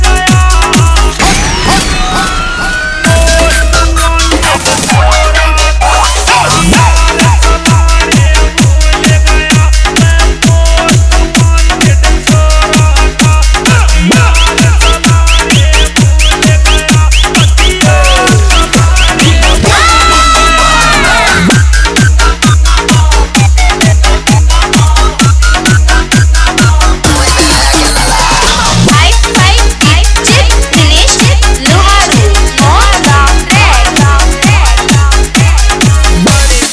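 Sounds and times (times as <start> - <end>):
siren bass remix: 0.0 - 36.6.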